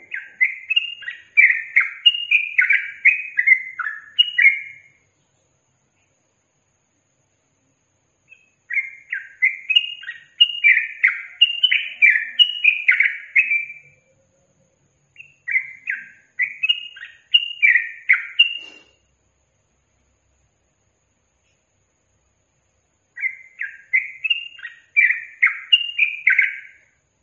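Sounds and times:
yellow-vented bulbul singing chattering slurred phrases: 0:00.0 - 0:06.1, 0:08.3 - 0:14.2, 0:15.1 - 0:18.9, 0:23.2 - 0:26.9.

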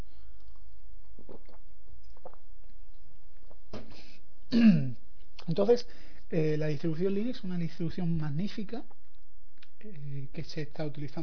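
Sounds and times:
steady low hiss: 0:00.0 - 0:11.2
person gulping and swallowing a drink: 0:00.4 - 0:03.8
speech: 0:04.5 - 0:09.0, 0:09.8 - 0:11.2.

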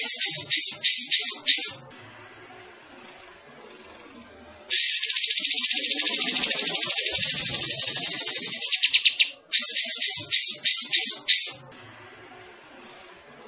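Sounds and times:
bulbul singing: 0:00.0 - 0:01.8, 0:04.7 - 0:11.6.

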